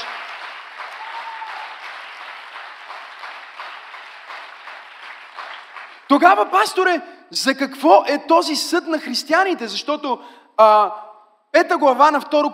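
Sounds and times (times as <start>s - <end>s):
audience applause: 0.0s - 6.3s
speech: 6.1s - 12.5s.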